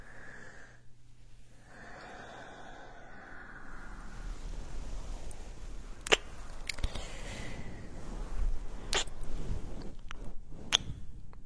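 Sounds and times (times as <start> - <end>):
ear massage soft rubbing and brushing: 1.0 - 1.7, 3.4 - 11.3.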